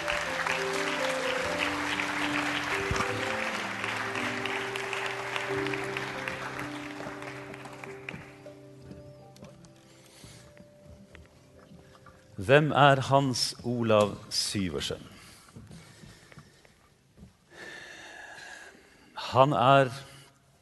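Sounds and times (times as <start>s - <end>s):
audience applause welcoming a state secretary at a talk event: 0.0s - 8.8s
speech: 12.5s - 15.1s, 19.4s - 20.1s.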